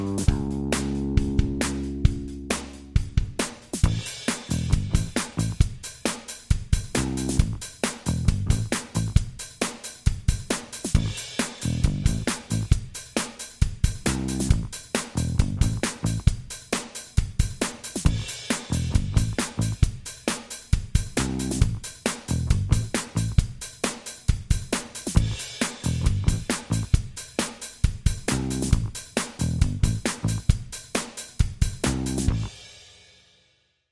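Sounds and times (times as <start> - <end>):
bass: 0.0 - 6.0, 6.7 - 9.4, 10.4 - 13.0, 13.8 - 16.5, 17.4 - 20.1, 21.0 - 23.6, 24.9 - 27.2, 28.0 - 30.7, 31.6 - 32.7
drums: 0.0 - 33.8.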